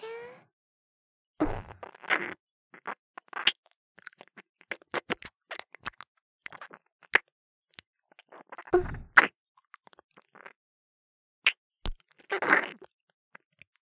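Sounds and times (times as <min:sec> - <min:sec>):
ear licking sounds: 0:01.4 - 0:07.2, 0:11.9 - 0:12.9.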